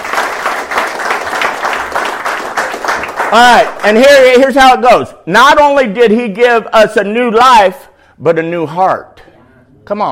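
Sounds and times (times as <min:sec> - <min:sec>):
audience applause: 0:00.0 - 0:03.9
speech: 0:03.3 - 0:09.2, 0:09.8 - 0:10.1.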